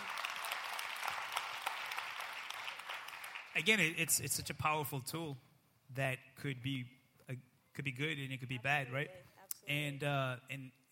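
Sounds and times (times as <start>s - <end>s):
clapping: 0.0s - 3.6s
speech: 3.6s - 10.8s.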